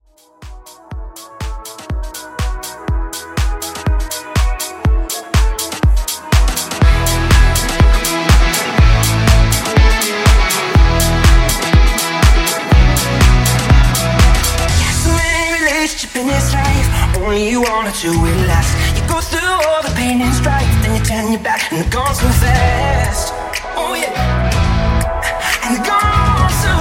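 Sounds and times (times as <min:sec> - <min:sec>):
house music edit: 0:00.0 - 0:26.7.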